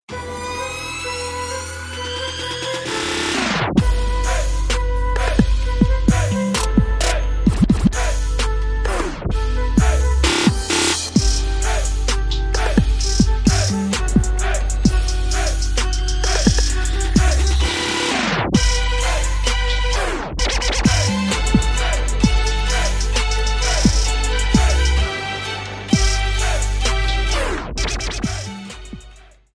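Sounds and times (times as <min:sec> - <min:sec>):
trap remix of a theme song: 0:00.1 - 0:29.5.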